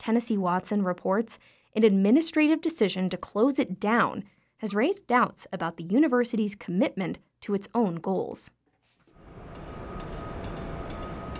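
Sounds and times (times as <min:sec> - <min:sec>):
speech: 0:00.0 - 0:08.6
heavy machinery rumbling with a faint high whine: 0:09.2 - 0:11.3.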